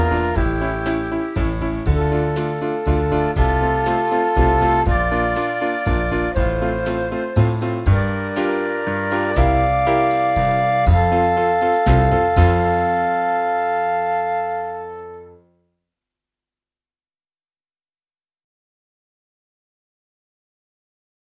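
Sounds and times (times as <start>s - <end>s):
flute: 0.0s - 15.4s.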